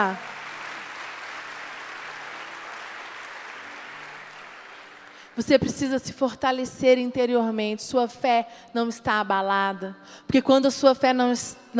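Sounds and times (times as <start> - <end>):
speech: 0.0 - 0.3, 5.4 - 11.7
audience applause: 0.0 - 5.4.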